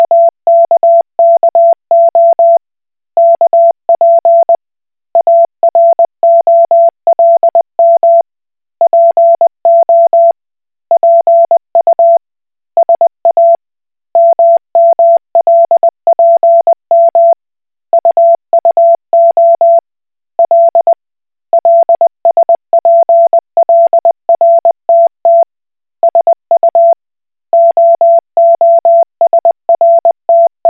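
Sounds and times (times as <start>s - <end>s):
Koch Morse code beeps: 0.0s - 2.6s, 3.2s - 4.6s, 5.2s - 8.2s, 8.8s - 10.4s, 11.0s - 12.2s, 12.8s - 13.6s, 14.2s - 17.4s, 18.0s - 19.8s, 20.4s - 20.9s, 21.6s - 25.5s, 26.1s - 27.0s, 27.6s - 30.6s.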